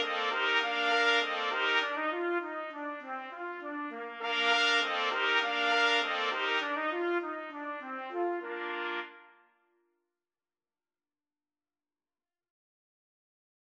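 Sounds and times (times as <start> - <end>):
trumpet quartet playing a musette: 0.0 - 9.4.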